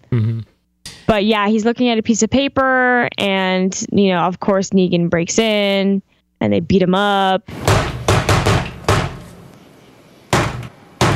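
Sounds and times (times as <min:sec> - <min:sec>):
speech: 0:01.1 - 0:07.7
heavy knocking on a door: 0:07.6 - 0:09.3, 0:10.4 - 0:11.1.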